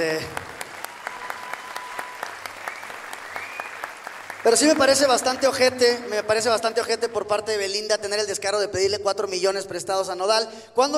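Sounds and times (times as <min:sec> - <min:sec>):
speech: 0:00.0 - 0:00.4, 0:04.4 - 0:10.9
weak applause: 0:00.0 - 0:06.1.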